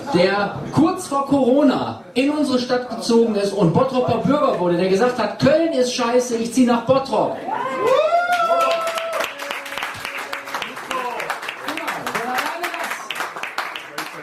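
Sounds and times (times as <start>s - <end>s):
speech: 0.1s - 8.1s
audience applause: 7.8s - 14.2s.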